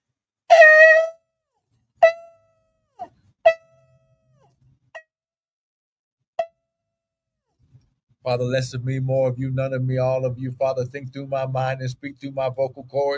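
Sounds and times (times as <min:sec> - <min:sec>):
trumpet blast sounding an alarm: 0:00.5 - 0:01.2
speech: 0:08.2 - 0:13.1.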